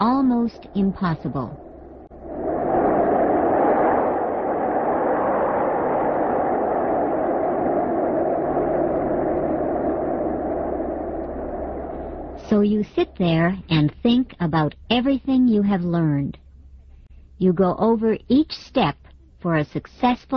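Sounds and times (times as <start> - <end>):
airplane engine roar: 0.0 - 13.7
speech: 0.4 - 1.7, 12.5 - 16.4, 17.4 - 20.3
wind rushing through open airplane door: 1.6 - 12.8.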